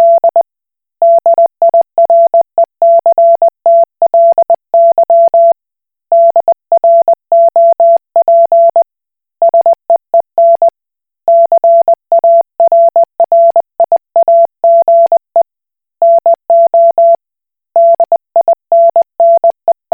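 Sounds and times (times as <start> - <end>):
Koch Morse code beeps: 0.0 - 0.4, 1.0 - 5.6, 6.2 - 8.8, 10.4 - 10.7, 11.3 - 15.2, 16.0 - 17.2, 17.8 - 19.6.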